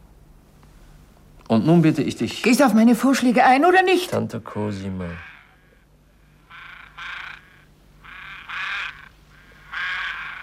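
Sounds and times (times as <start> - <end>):
faint low hum: 0.0 - 10.4
speech: 1.5 - 5.3
ravens croaking: 4.6 - 10.4.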